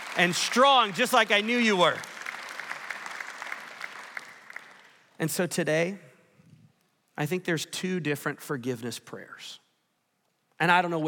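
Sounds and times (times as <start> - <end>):
round of applause at a talk about forgiveness: 0.0 - 5.2
speech: 0.2 - 2.1, 5.2 - 6.1, 7.2 - 9.6, 10.6 - 11.0.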